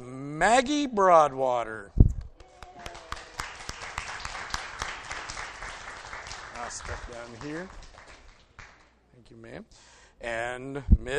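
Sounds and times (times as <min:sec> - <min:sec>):
speech: 0:00.4 - 0:02.1, 0:06.7 - 0:07.8, 0:09.2 - 0:11.1
round of applause from a group of people: 0:02.4 - 0:09.0.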